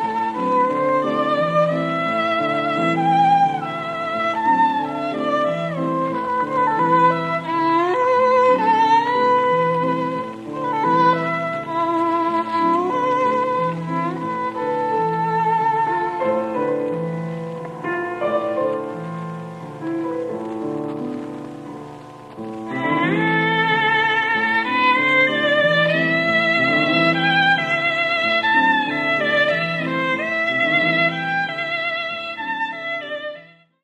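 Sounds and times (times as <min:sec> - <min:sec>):
violin and piano suite: 0:00.0 - 0:33.8.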